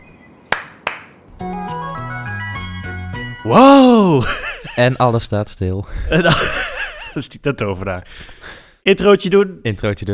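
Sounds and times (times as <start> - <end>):
hands clapping: 0.5 - 1.1
speech: 3.4 - 10.1
laughter: 4.1 - 5.0, 6.1 - 7.2.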